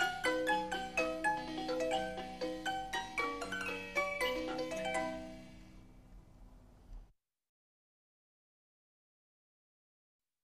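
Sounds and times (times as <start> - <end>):
music box with zither: 0.0 - 5.7.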